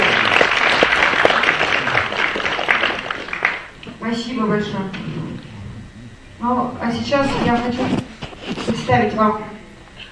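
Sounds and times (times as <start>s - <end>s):
audience applause: 0.0s - 3.8s
speech: 4.4s - 5.1s, 6.4s - 8.1s, 8.9s - 9.6s.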